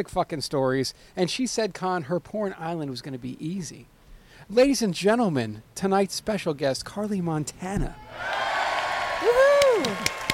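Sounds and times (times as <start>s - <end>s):
speech: 0.0s - 8.4s
studio audience clapping and cheering: 8.1s - 10.3s.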